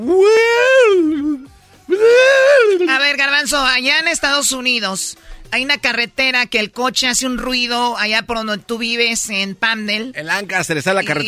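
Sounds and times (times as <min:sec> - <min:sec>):
speech: 0:00.0 - 0:00.4, 0:03.4 - 0:11.2
voice imitating Croatian sea organ tones: 0:00.0 - 0:02.9.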